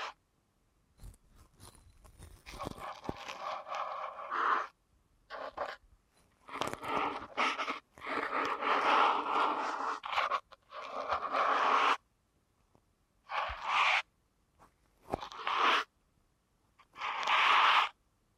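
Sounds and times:
scratchy rustling rubbing in an ear canal massage: 1.0 - 12.0, 13.2 - 14.1, 15.0 - 15.9, 16.8 - 18.0.

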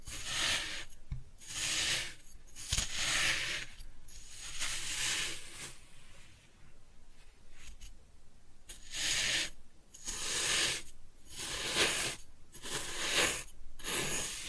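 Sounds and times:
kinetic sand cut and scooped: 0.0 - 5.8, 8.7 - 14.4.

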